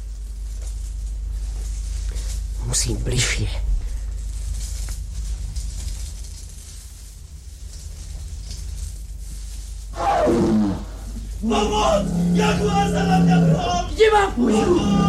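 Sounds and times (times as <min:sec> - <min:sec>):
low rumbling background: 0:00.0 - 0:15.0
speech: 0:02.7 - 0:03.7, 0:11.5 - 0:15.0
jaguar roaring: 0:09.9 - 0:15.0.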